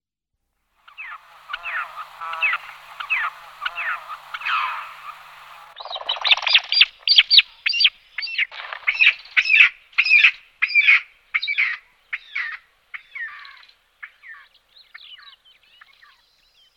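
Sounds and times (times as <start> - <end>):
rock partridge giving harsh chattering notes: 0.9 - 13.6.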